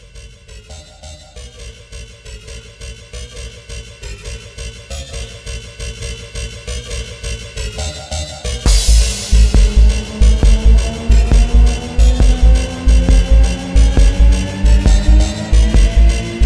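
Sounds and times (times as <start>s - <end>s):
police siren remix: 7.9s - 16.4s.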